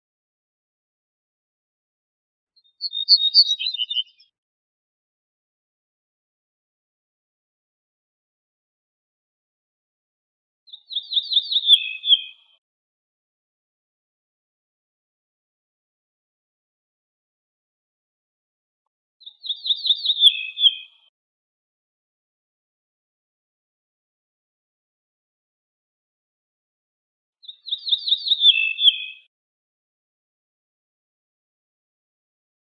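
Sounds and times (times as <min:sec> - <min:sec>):
ortolan bunting slurred song: 0:02.6 - 0:04.3, 0:10.6 - 0:12.6, 0:19.2 - 0:21.1, 0:27.4 - 0:29.3.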